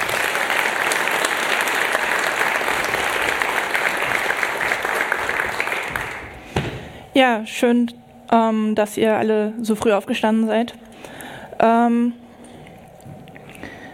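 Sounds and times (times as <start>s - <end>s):
audience applause: 0.0s - 6.5s
speech: 7.2s - 10.8s, 11.6s - 12.2s.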